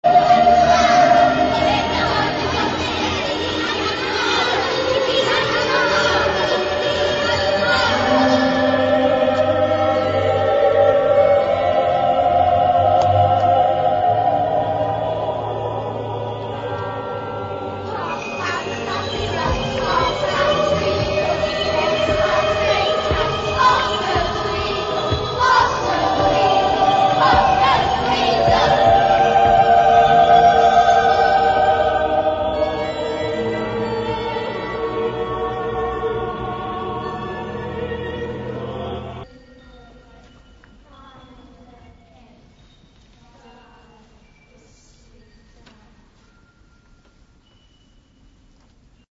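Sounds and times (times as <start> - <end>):
Celtic requiem music: 0.0 - 39.3.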